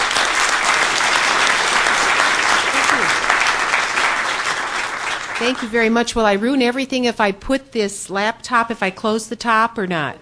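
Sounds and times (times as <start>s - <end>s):
welcoming round of applause: 0.0s - 5.9s
speech: 5.4s - 10.1s.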